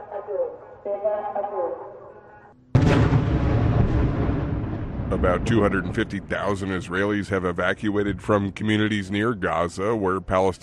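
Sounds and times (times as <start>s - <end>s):
speech: 0.3s - 2.0s, 5.1s - 10.6s
loud explosion bangs: 2.8s - 7.3s.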